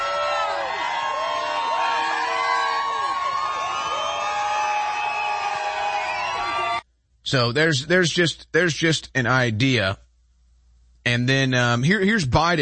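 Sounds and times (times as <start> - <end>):
crowd cheering: 0.0 - 6.8
speech: 7.3 - 10.0, 11.2 - 12.6.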